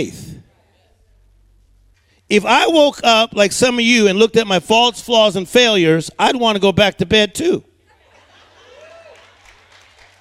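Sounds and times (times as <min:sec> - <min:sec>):
speech: 0:00.0 - 0:00.2, 0:02.3 - 0:07.7
laughter: 0:07.9 - 0:09.6
audience clapping: 0:08.7 - 0:10.1.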